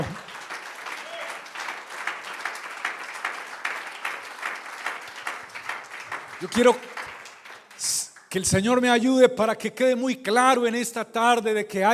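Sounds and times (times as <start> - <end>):
audience applauding: 0.0 - 8.5
speech: 6.4 - 6.9, 7.8 - 11.9.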